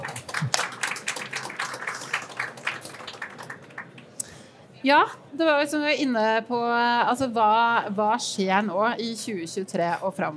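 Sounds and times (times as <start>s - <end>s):
audience clapping: 0.0s - 4.3s
speech: 4.8s - 10.3s.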